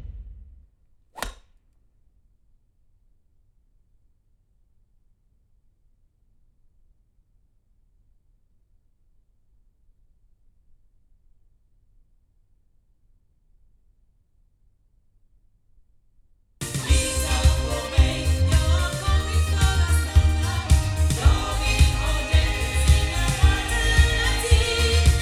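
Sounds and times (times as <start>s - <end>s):
sound from loudspeakers recorded with Oktava MK319A: 16.6s - 25.2s.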